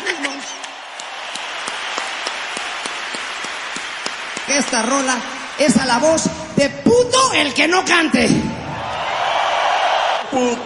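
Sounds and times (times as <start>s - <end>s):
audience applause at live concert: 0.0s - 6.2s, 8.6s - 10.6s
speech: 4.5s - 8.5s, 10.3s - 10.6s.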